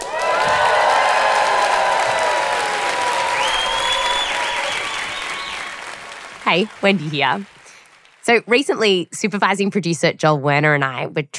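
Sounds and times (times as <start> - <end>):
audience cheering: 0.0 - 8.2
applause: 0.0 - 8.4
speech: 6.5 - 7.6, 8.3 - 11.3.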